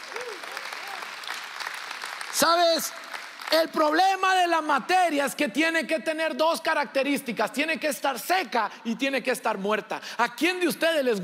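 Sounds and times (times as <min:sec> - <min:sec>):
audience applause: 0:00.0 - 0:04.0
speech: 0:02.4 - 0:11.2.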